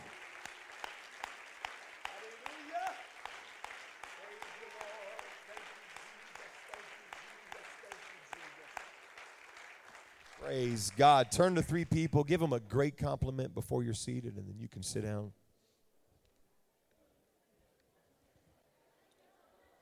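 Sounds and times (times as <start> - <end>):
audience clapping hands in a steady rhythm: 0.0 - 13.4
speech: 10.5 - 15.4.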